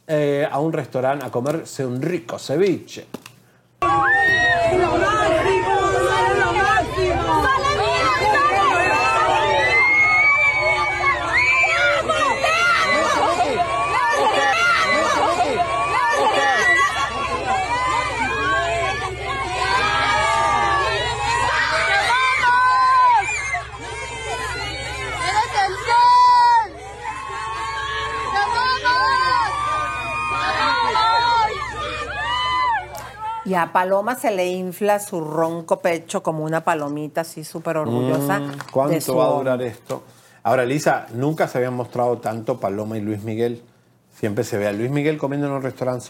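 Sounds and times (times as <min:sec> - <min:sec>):
speech: 0:00.1 - 0:03.2, 0:33.5 - 0:46.0
crowd commotion around celebrities at restaurant: 0:03.8 - 0:34.5
shrill cries: 0:07.3 - 0:33.5.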